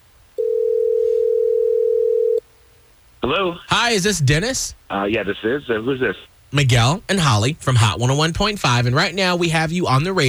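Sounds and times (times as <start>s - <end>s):
telephone dial tone while a call is being placed: 0.4s - 2.4s
speech: 3.2s - 10.2s.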